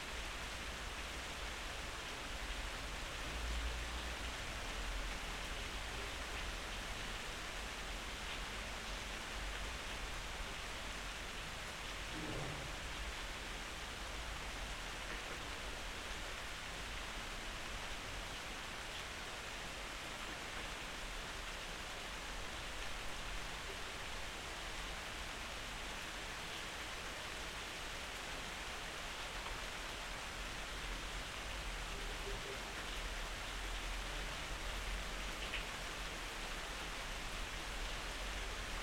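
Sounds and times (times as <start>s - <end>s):
rain: 0.0s - 38.8s
thunder: 12.0s - 13.1s.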